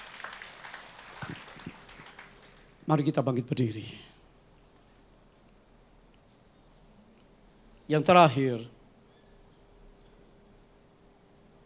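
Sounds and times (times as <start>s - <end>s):
audience applause: 0.0s - 2.8s
speech: 2.9s - 4.1s, 7.9s - 8.8s.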